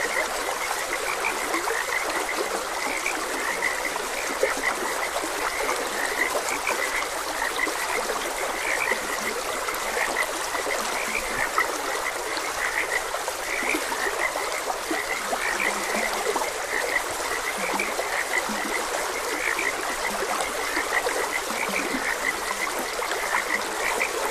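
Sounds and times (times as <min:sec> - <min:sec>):
flowing stream: 0:00.0 - 0:24.3
frog chorus croaking: 0:00.0 - 0:24.3.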